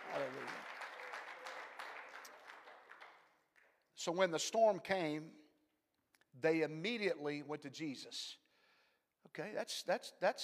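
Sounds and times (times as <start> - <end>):
crowd clapping: 0.0 - 3.8
speech: 4.0 - 5.4, 6.4 - 8.4, 9.2 - 10.4.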